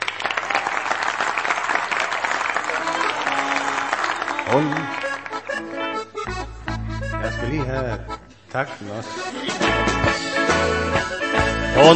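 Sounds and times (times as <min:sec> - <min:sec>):
audience applauding to welcome a performer: 0:00.0 - 0:05.8
speech: 0:04.5 - 0:04.8, 0:07.2 - 0:11.9.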